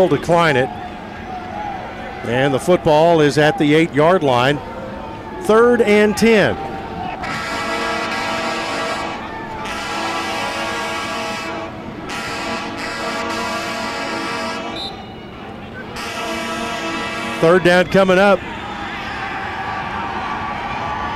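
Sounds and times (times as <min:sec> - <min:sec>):
speech: 0:00.0 - 0:00.9, 0:02.2 - 0:04.7, 0:05.4 - 0:07.4, 0:17.4 - 0:18.6
big truck horn blowing: 0:07.2 - 0:15.2, 0:15.8 - 0:19.2.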